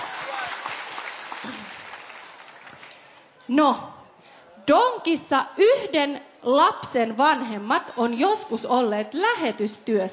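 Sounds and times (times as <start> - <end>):
applause from a small group: 0.0 - 3.3
speech: 3.5 - 4.0, 4.7 - 10.1.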